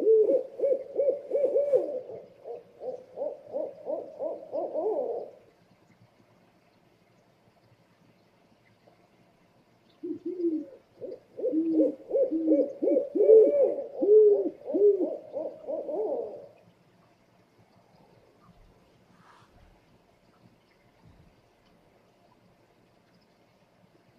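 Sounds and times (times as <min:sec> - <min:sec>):
scops owl hooting: 0:00.0 - 0:05.4, 0:10.0 - 0:16.5.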